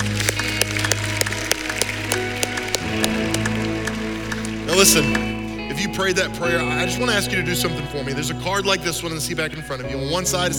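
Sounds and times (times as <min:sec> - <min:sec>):
audience applause: 0:00.0 - 0:07.2
speech: 0:04.8 - 0:05.2, 0:05.8 - 0:10.5.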